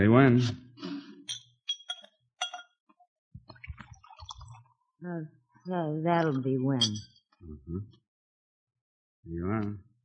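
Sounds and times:
speech: 0:00.0 - 0:00.6, 0:05.0 - 0:08.0, 0:09.2 - 0:09.9
glass clinks: 0:01.2 - 0:02.8, 0:06.2 - 0:07.2
drink being poured from a bottle into glass: 0:03.6 - 0:04.7.

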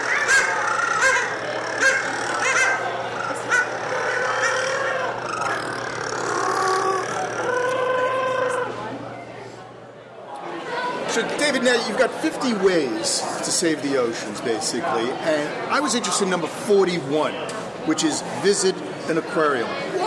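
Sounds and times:
penguin colony calling: 0:00.0 - 0:08.8
speech: 0:11.5 - 0:20.0.

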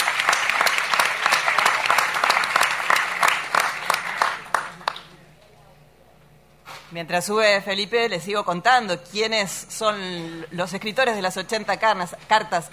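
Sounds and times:
audience applause: 0:00.0 - 0:05.2
speech: 0:07.0 - 0:12.7.

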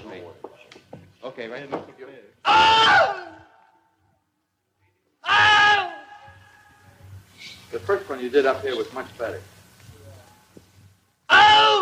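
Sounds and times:
speech: 0:01.3 - 0:03.2, 0:07.7 - 0:09.6
man screaming while bitten by an alligator: 0:02.4 - 0:03.8, 0:05.2 - 0:06.7, 0:11.3 - 0:11.8.

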